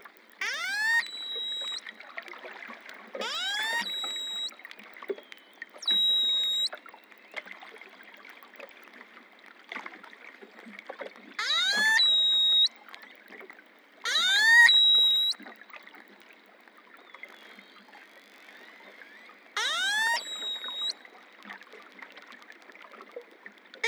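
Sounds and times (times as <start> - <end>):
long-finned pilot whale calls: 0.4 - 2.0, 3.2 - 4.6, 5.2 - 6.8, 11.4 - 12.8, 14.1 - 15.4, 17.2 - 21.1.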